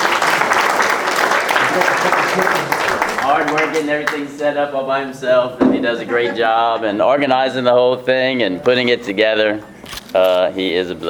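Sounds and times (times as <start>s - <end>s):
audience applause: 0.0s - 4.2s
laughter: 1.4s - 3.4s, 5.8s - 7.6s
speech: 1.8s - 11.0s.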